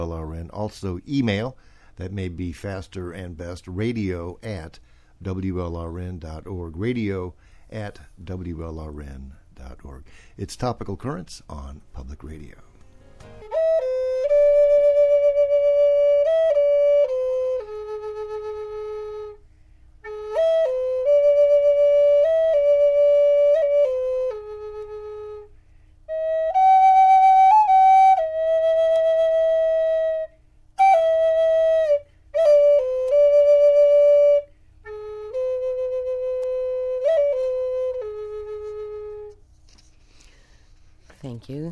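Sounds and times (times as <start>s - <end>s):
speech: 0.5s - 12.7s
flute playing a melody: 12.8s - 39.5s.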